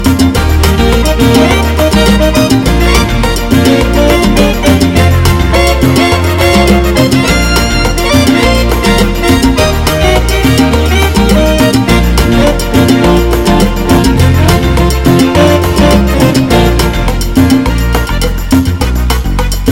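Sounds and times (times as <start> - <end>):
mambo music: 0.0 - 19.7.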